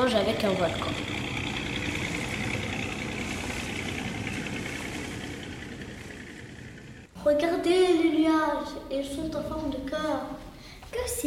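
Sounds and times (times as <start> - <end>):
speech: 0.0 - 1.3, 7.2 - 11.2
motorboat engine running: 0.0 - 7.1.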